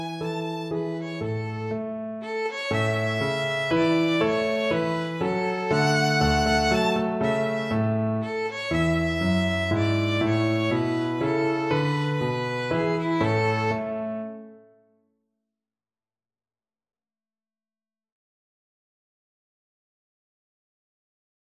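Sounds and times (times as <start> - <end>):
German dance tune on violin: 0.0 - 13.9.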